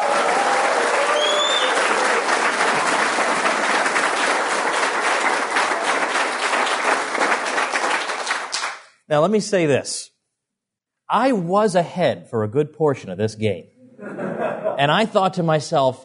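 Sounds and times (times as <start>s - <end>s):
room full of people applauding: 0.0s - 8.9s
speech: 9.1s - 10.1s, 11.1s - 16.0s
laughter: 13.8s - 15.0s.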